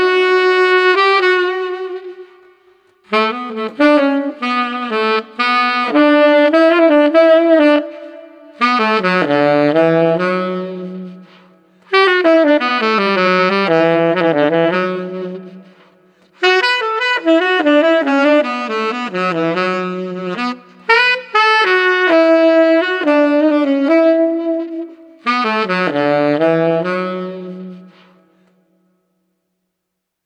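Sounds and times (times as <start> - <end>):
tenor saxophone playing in the street: 0.0 - 29.0.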